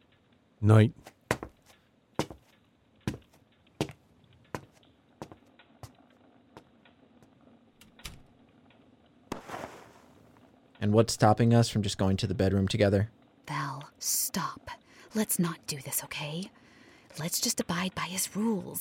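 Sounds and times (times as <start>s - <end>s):
speech: 0.6s - 1.1s, 10.9s - 13.2s, 14.0s - 16.6s, 17.2s - 18.8s
wood fire crackling in a fireplace: 1.6s - 11.9s.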